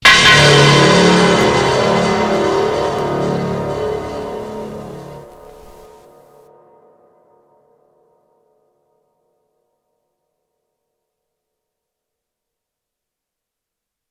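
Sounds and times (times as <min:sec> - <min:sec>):
anime dramatic music sting: 0:00.0 - 0:06.0.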